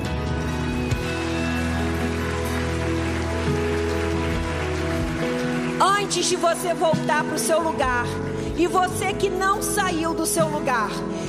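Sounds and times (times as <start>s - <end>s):
audience applauding: 0.0s - 8.1s
speech: 6.1s - 11.2s.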